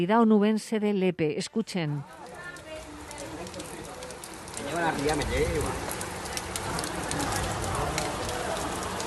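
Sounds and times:
speech: 0.0s - 2.3s, 4.7s - 5.9s
rushing floodwater sweeping through Lepe: 2.1s - 9.0s.

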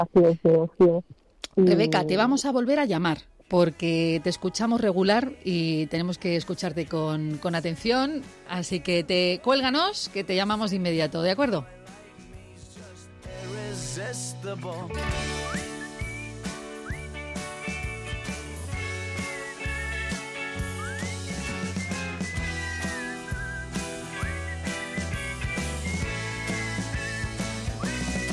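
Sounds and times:
speech: 0.0s - 11.8s, 14.0s - 15.6s
full band with steady bass and drums: 13.2s - 28.3s
bright whistled melody in a song: 15.0s - 28.3s.

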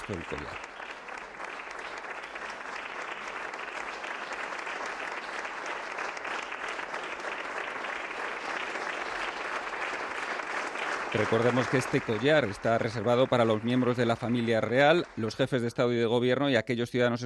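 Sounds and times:
audience applause at ceremony: 0.0s - 16.0s
speech: 0.1s - 0.7s, 11.1s - 17.2s.

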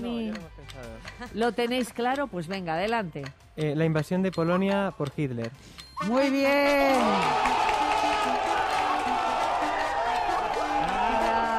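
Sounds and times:
speech: 0.0s - 8.4s
crowd cheering with shouting voices and whoops: 6.0s - 11.5s
crowd applauding: 6.7s - 11.5s.

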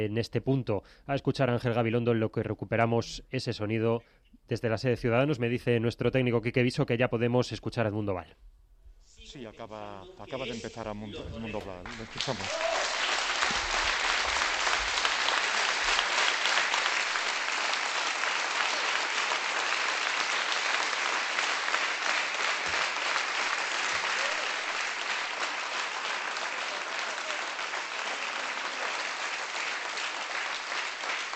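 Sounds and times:
speech: 0.0s - 8.6s, 9.3s - 13.0s
crowd applauding for a candidate: 11.2s - 31.3s.

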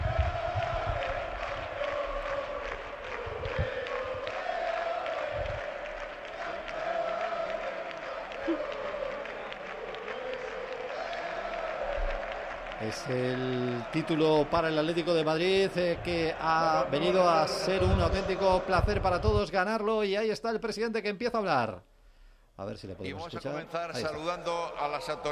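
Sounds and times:
football players chanting champions: 0.0s - 19.5s
shouting and cheering: 0.0s - 19.5s
speech: 12.9s - 21.9s, 22.6s - 25.3s.

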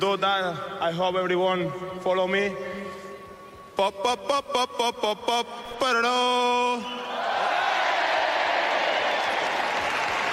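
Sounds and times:
speech: 0.0s - 2.8s, 3.8s - 7.3s
crowd applauding at a Paris tennis tournament: 7.6s - 10.3s.

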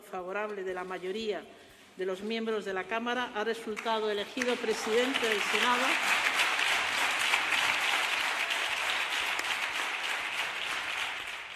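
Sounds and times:
speech: 0.1s - 6.2s
applause in parliament chamber: 3.7s - 11.5s.

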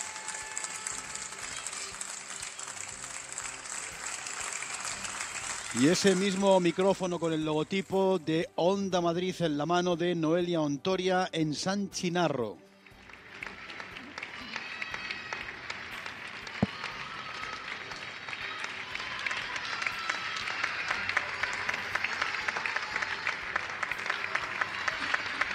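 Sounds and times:
crowd applause: 0.0s - 7.2s, 13.0s - 25.5s
speech: 5.7s - 12.6s.

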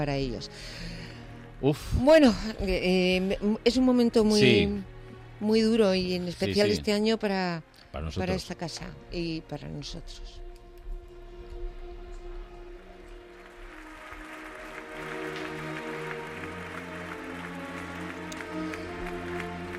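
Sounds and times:
speech: 0.0s - 1.0s, 1.6s - 10.4s
audience applause in Madrid: 13.0s - 19.7s.

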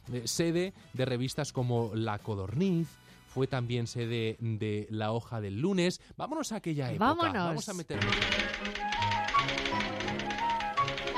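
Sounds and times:
speech: 0.1s - 10.0s
typewriters clattering in a newsroom at Madrid's Palacio de la Prensa: 7.9s - 11.1s.

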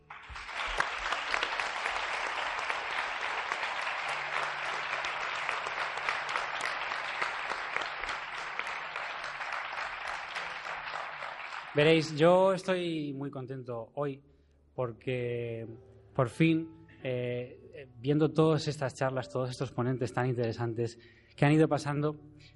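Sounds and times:
audience applause: 0.0s - 12.2s
speech: 11.8s - 22.5s.

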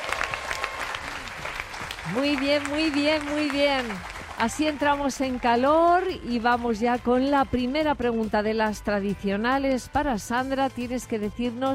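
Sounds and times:
audience applause: 0.0s - 5.9s
speech: 2.1s - 11.7s.

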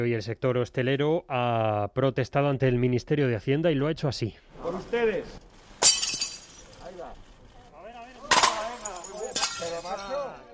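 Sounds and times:
speech: 0.0s - 5.9s
crockery smashing against the floor: 5.8s - 6.9s, 8.3s - 10.2s.

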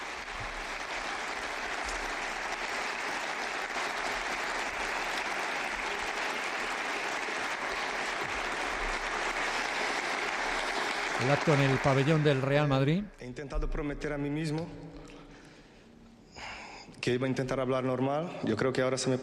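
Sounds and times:
sustained ovation from a large audience: 0.0s - 13.1s
speech: 11.2s - 15.0s, 17.0s - 19.2s.

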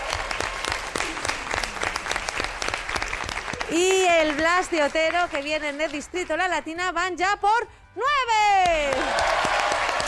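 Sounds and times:
audience applauding at a school team competition: 0.0s - 6.6s, 8.6s - 10.0s
speech: 3.7s - 9.3s.

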